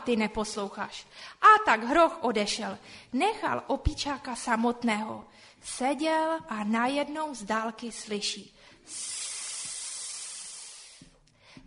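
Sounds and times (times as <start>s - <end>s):
speech: 0.0s - 9.2s
snake hissing: 8.7s - 11.2s.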